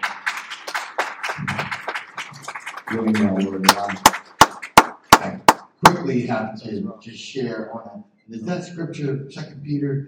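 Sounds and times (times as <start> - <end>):
round of applause from a group: 0.0 - 5.5
speech: 2.9 - 4.2, 6.1 - 10.0.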